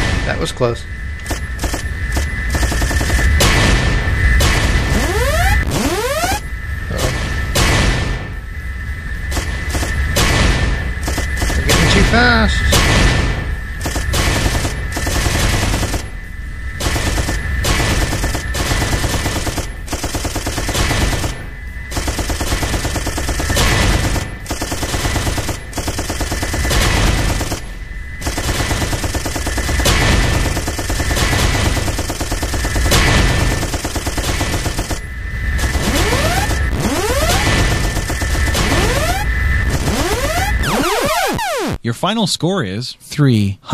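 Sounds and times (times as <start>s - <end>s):
speech: 0.3s - 1.5s, 12.1s - 12.7s, 42.0s - 43.7s
video game gunfire shooting down rockets: 1.2s - 8.3s, 9.4s - 16.1s, 16.8s - 35.0s, 35.6s - 41.8s
steady high tone: 4.8s - 7.1s, 35.6s - 41.9s.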